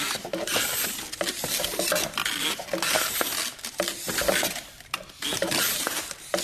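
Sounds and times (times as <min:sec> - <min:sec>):
wind-powered anti-landmine detonator rolling with footstep-like noise: 0:00.0 - 0:06.4.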